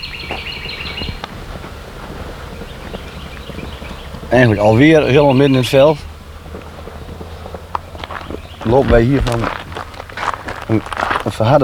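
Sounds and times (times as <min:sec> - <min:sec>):
bird singing in open field: 0:00.0 - 0:11.6
soft low thumps: 0:00.0 - 0:11.6
wind rumble: 0:00.0 - 0:11.6
speech: 0:04.3 - 0:06.1, 0:08.7 - 0:09.6, 0:10.7 - 0:11.6.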